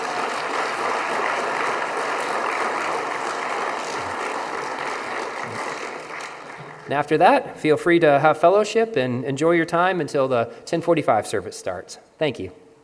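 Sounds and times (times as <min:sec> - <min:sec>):
audience applause: 0:00.0 - 0:07.2
speech: 0:06.9 - 0:12.6.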